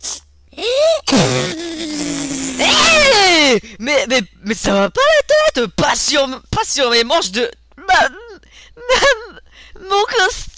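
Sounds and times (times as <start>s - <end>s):
nose blowing: 0.0s - 0.3s, 1.1s - 2.8s
speech: 3.5s - 8.2s, 8.8s - 10.5s.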